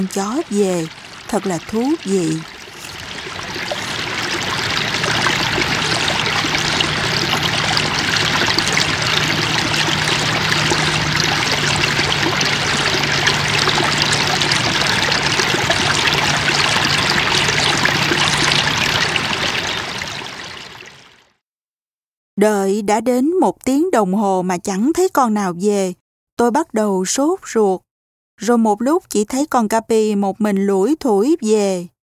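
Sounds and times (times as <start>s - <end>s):
speech: 0.0s - 2.5s, 22.4s - 32.0s
babbling stream flowing over a large rock covered in small plants: 0.0s - 21.2s
water spilling down a small cascade: 0.0s - 21.3s.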